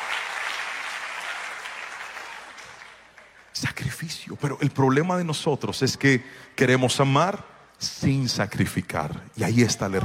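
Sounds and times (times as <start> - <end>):
audience applause: 0.0 - 3.5
speech: 3.6 - 10.0.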